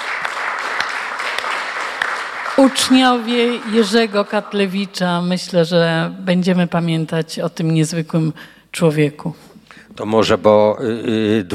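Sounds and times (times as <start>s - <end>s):
audience applause: 0.0s - 5.3s
speech: 2.6s - 11.5s.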